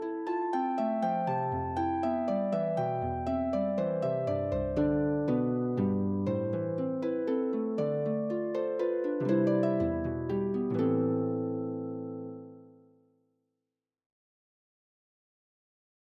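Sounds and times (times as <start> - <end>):
harp: 0.0 - 12.9.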